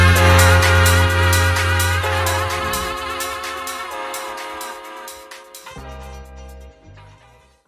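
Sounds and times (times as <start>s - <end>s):
wordplay transition effect: 0.1s - 4.8s.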